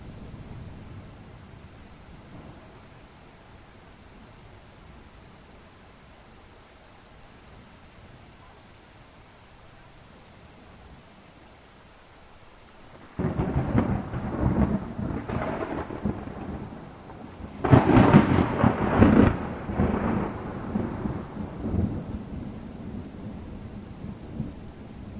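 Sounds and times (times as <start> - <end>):
rain hiss: 0.0 - 25.1
rolling thunder: 12.9 - 25.1.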